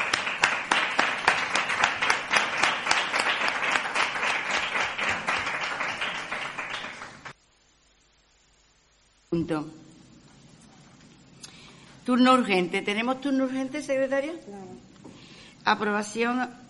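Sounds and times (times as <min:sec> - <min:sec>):
applause in council meeting: 0:00.0 - 0:07.4
speech: 0:09.4 - 0:09.8, 0:12.0 - 0:14.8, 0:15.7 - 0:16.6.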